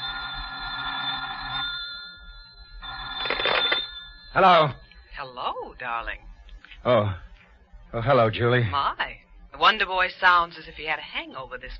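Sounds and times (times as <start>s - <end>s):
telephone ringing: 0.0s - 6.2s
speech: 4.4s - 7.2s, 7.9s - 11.7s.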